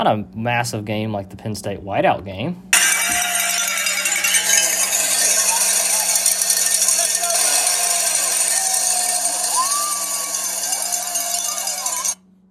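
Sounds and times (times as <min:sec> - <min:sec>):
speech: 0:00.0 - 0:02.7
cowbells in Davis Wade Stadium: 0:02.8 - 0:12.2
crowd yelling in Davis Wade Stadium: 0:02.8 - 0:12.2.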